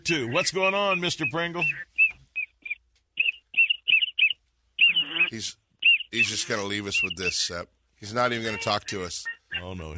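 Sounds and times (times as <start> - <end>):
speech: 0.1 - 1.9, 5.3 - 9.9
duck call whistle: 0.3 - 7.4.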